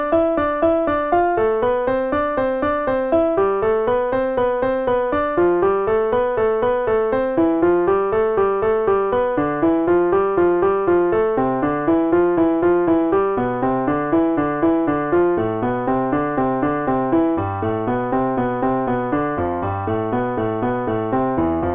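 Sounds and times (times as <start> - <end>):
piano finger exercise: 0.0 - 21.7.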